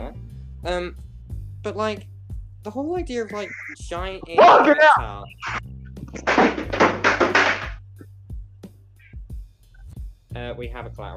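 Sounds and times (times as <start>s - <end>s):
speech: 0.6s - 6.6s, 10.4s - 11.1s
pigeon striking a window: 6.2s - 7.8s.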